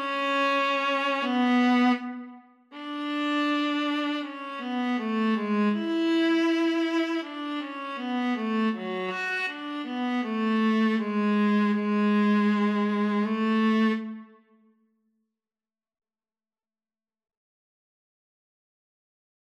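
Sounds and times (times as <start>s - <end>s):
viola in a viola and cello duet: 0.0s - 14.4s
cello in a viola and cello duet: 0.0s - 14.5s.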